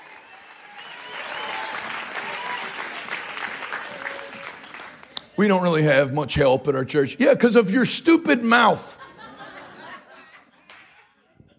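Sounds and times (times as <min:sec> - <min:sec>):
faint voices and cheers: 0:00.0 - 0:05.0
audience clapping hands: 0:00.0 - 0:05.4
speech: 0:05.4 - 0:09.0
laughter: 0:08.8 - 0:11.5.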